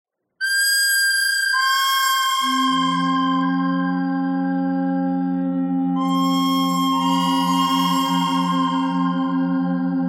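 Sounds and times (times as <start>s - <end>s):
pentatonic bird melody: 0.4s - 9.9s.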